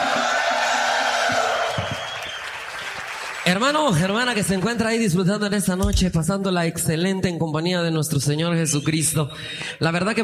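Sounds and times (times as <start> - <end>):
crowd shouting loudly: 0.0 - 2.0
speech: 3.5 - 10.2.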